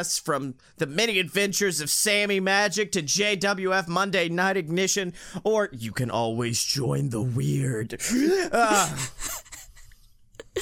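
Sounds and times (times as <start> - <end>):
speech: 0.0 - 9.4
person imitating demonic possession noises with a wavering groan: 8.1 - 9.1.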